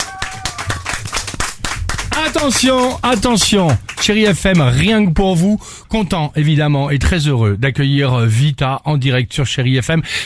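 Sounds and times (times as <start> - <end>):
audience applauding: 0.0 - 5.1
speech: 2.2 - 10.2.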